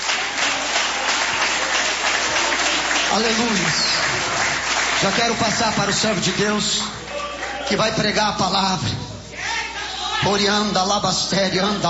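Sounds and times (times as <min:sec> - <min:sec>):
audience clapping: 0:00.0 - 0:08.1
speech: 0:03.1 - 0:04.4, 0:05.0 - 0:06.9, 0:07.7 - 0:09.1, 0:10.2 - 0:11.8.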